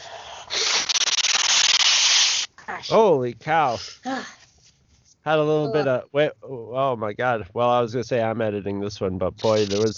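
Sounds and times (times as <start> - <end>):
nose blowing: 0.0 - 2.5
speech: 2.8 - 4.4, 5.2 - 9.9.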